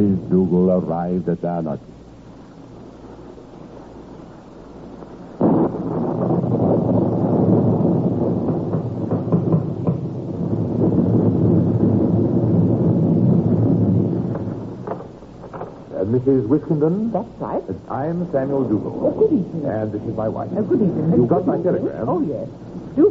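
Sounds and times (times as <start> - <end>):
speech: 0.0 - 2.0, 16.2 - 23.0
stormy winter night wind: 1.7 - 23.0.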